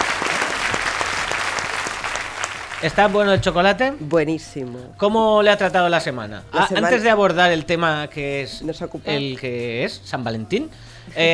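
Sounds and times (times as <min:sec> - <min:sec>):
small group applauding in a radio studio celebrating Radio Day: 0:00.0 - 0:03.2
speech: 0:02.8 - 0:11.3.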